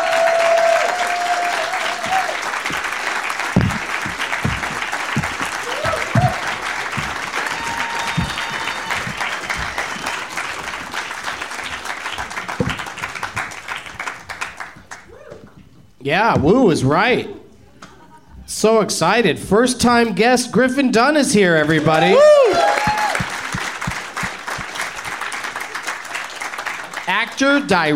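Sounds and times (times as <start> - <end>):
studio audience applause welcoming three guests onto a talk show stage: 0.0 - 15.2, 21.6 - 27.4
speech: 16.1 - 17.4, 18.6 - 22.4, 27.4 - 27.9.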